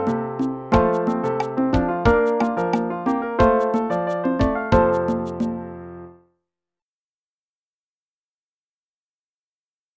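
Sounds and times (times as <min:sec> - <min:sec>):
musical accompaniment: 0:00.0 - 0:06.0.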